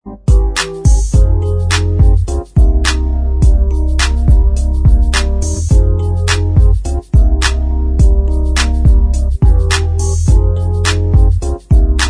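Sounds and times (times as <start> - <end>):
instrumental music: 0.0 - 12.0.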